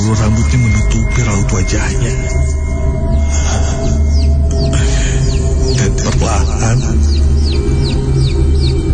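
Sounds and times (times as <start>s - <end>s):
speech: 0.2s - 3.9s, 6.2s - 7.1s
chicks peeping: 3.8s - 8.9s.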